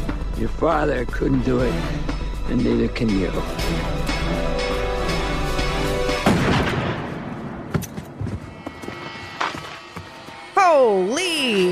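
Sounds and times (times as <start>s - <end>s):
music: 0.0s - 6.9s
speech: 0.4s - 4.4s, 10.8s - 11.7s
gunshot: 6.2s - 7.3s.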